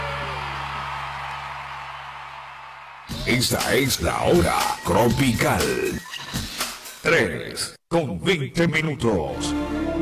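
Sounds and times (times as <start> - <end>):
loud applause: 0.0 - 4.0
speech: 3.3 - 6.4, 7.0 - 9.8.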